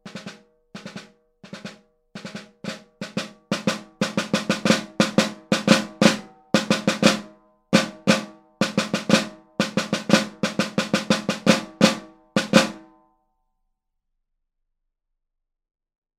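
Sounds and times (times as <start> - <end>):
snare drum practice: 0.0 - 13.0.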